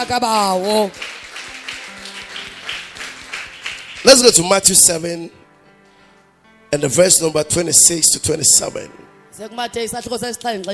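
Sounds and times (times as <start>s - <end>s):
speech: 0.0s - 1.1s, 4.0s - 5.4s, 6.7s - 10.7s
audience clapping: 0.0s - 4.7s.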